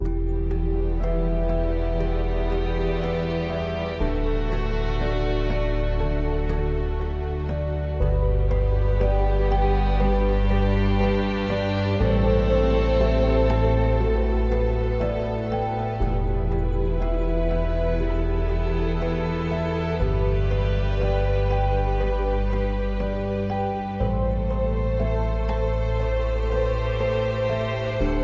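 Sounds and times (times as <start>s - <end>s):
ambient music: 0.0s - 28.2s.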